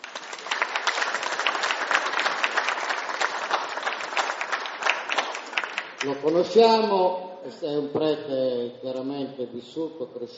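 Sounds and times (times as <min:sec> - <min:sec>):
audience applause: 0:00.0 - 0:06.2
speech: 0:06.0 - 0:10.3.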